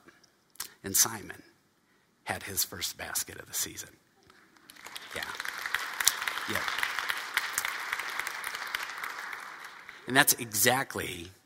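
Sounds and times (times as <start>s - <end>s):
speech: 0.8s - 1.5s, 2.3s - 4.1s, 6.5s - 6.8s, 10.1s - 11.4s
audience applause: 4.6s - 10.7s.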